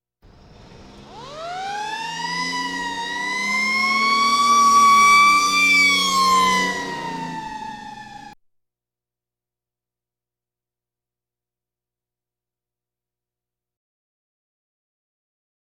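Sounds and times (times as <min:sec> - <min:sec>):
police sirens: 0:00.3 - 0:08.4.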